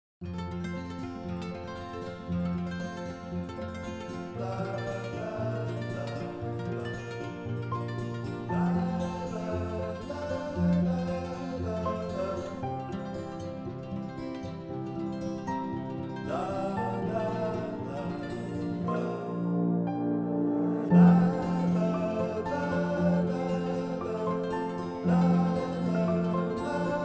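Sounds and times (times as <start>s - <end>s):
vocals: 0.7s - 27.0s.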